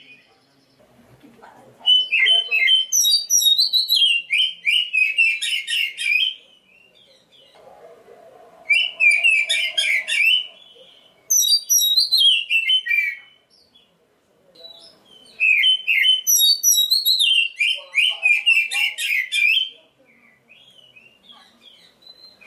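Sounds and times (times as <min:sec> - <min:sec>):
black-breasted Oriental magpie-robin song: 0:01.8 - 0:07.2, 0:08.7 - 0:13.3, 0:14.7 - 0:19.8, 0:20.6 - 0:22.4.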